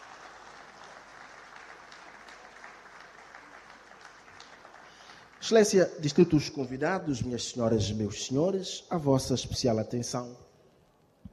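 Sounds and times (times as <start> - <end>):
applause for award-winning companies: 0.0 - 5.8
speech: 5.4 - 10.5.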